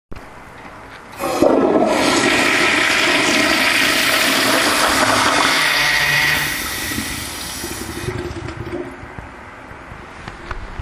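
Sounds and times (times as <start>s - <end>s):
toilet: 1.1s - 9.1s.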